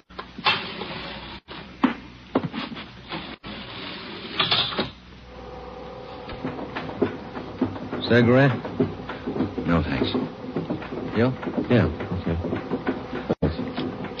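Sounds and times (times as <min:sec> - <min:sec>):
elevator whirring hum: 0:00.0 - 0:14.1
elevator clunks and rattles: 0:06.3 - 0:14.1
speech: 0:08.1 - 0:09.0, 0:09.7 - 0:10.4, 0:11.2 - 0:12.1.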